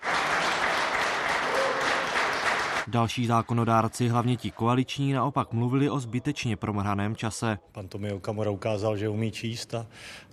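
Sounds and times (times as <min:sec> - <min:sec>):
parliament members applauding: 0:00.0 - 0:05.1
speech: 0:02.9 - 0:10.3.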